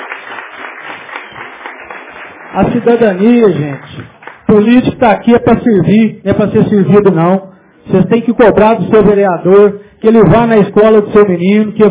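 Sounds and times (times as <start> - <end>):
townspeople of Jaci applauding at a local political gathering: 0.0 - 4.5
speech: 2.6 - 11.8.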